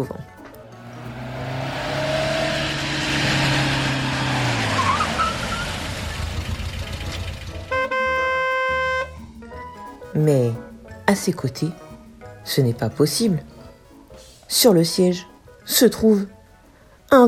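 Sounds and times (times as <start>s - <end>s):
speech: 0.0s - 0.4s, 10.2s - 11.8s, 12.4s - 13.5s, 14.5s - 16.4s
rushing tire noise: 0.0s - 9.3s
car arriving at high speed with a roaring engine: 0.4s - 9.1s.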